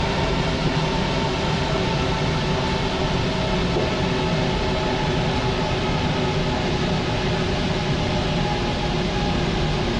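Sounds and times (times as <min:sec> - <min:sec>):
metro train passing fast: 0:00.0 - 0:09.9.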